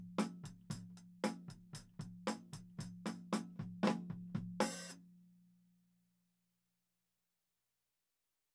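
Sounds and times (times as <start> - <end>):
tom drums: 0.0 - 5.0.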